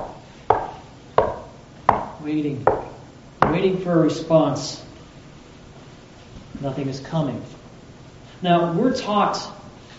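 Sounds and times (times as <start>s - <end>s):
knocking on a door: 0.5s - 2.1s, 2.7s - 3.6s
speech: 2.2s - 2.9s, 3.6s - 4.9s, 6.6s - 7.6s, 8.4s - 9.6s.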